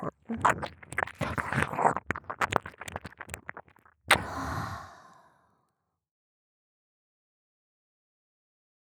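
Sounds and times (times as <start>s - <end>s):
ASMR ear licking sounds in left ear: 0.0s - 4.4s.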